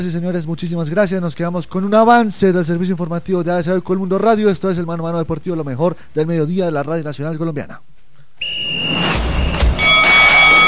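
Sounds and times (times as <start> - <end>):
speech: 0.0 - 9.2
boxing bell clanging: 9.6 - 10.6.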